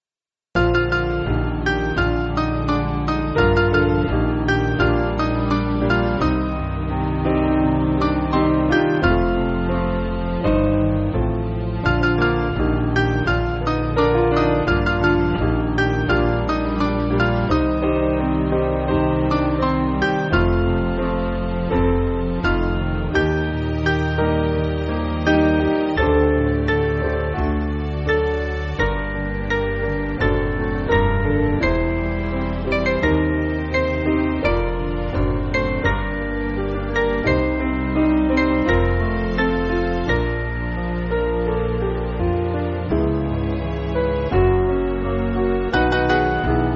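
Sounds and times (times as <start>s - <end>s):
piano: 0.6s - 46.7s.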